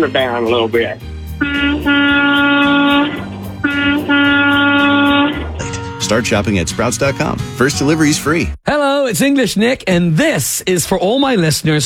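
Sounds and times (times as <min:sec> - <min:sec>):
speech: 0:00.0 - 0:02.4, 0:06.1 - 0:11.8
18-wheeler truck air horn honk: 0:01.4 - 0:05.6.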